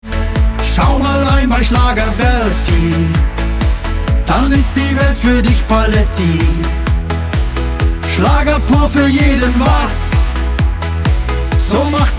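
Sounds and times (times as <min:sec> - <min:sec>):
schlager music: 0:00.0 - 0:12.1.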